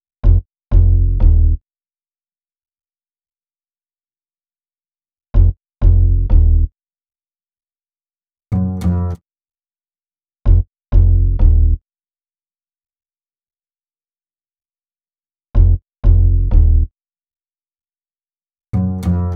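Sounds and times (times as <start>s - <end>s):
hip-hop bass: 0.2s - 1.6s, 5.4s - 6.7s, 10.5s - 11.8s, 15.6s - 16.9s, 18.8s - 19.3s.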